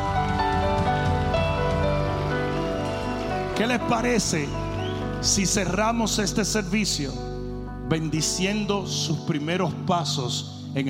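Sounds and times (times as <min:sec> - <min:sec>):
audience applause: 0:00.0 - 0:05.8
speech: 0:03.6 - 0:04.6, 0:05.2 - 0:07.3, 0:07.9 - 0:10.8.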